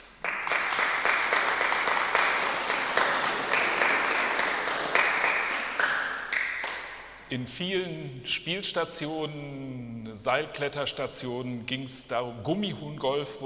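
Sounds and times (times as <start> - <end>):
audience applause: 0.1 - 7.0
speech: 7.3 - 13.4.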